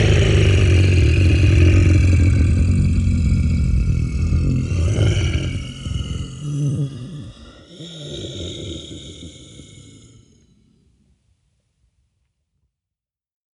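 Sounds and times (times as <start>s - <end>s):
monster roar: 0.0s - 10.6s.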